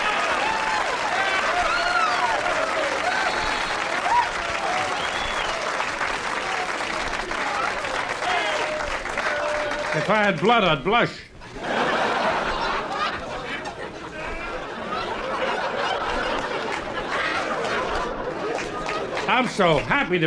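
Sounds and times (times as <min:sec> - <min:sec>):
whoops and cheers: 0:00.0 - 0:05.8, 0:07.4 - 0:10.0
audience applause: 0:00.0 - 0:10.8, 0:11.6 - 0:20.2
speech: 0:10.1 - 0:11.3, 0:19.4 - 0:20.2
laughter: 0:11.4 - 0:20.2.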